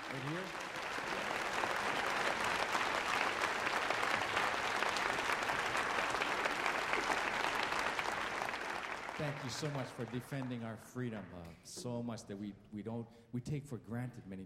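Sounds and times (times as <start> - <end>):
audience applause: 0.0 - 11.3
speech: 0.1 - 0.7, 9.2 - 14.4.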